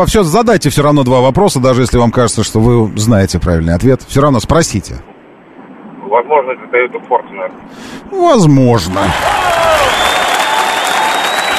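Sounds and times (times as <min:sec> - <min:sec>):
speech: 0:00.0 - 0:05.1, 0:06.2 - 0:10.2
applause during a quiz phone-in: 0:08.8 - 0:11.5.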